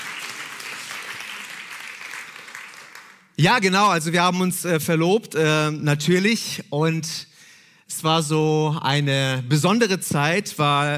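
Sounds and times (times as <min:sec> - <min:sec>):
applause: 0:00.0 - 0:03.4
speech: 0:03.4 - 0:07.3, 0:08.0 - 0:10.9.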